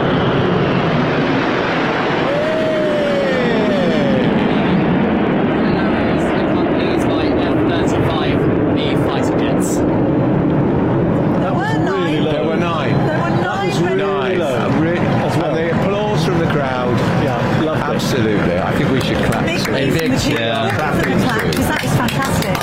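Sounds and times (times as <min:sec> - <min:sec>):
large crowd cheering and chattering: 0:00.0 - 0:10.0, 0:10.8 - 0:22.6
Red Arrows jet aircraft flypast: 0:00.0 - 0:22.6.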